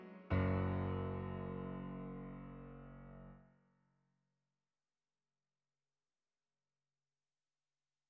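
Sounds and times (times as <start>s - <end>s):
solo piano: 0.0s - 3.4s.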